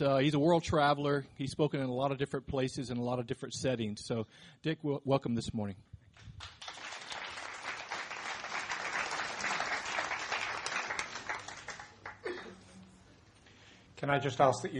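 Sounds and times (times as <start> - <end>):
speech: 0.0 - 6.6, 14.0 - 14.7
room full of people clapping: 6.2 - 12.4.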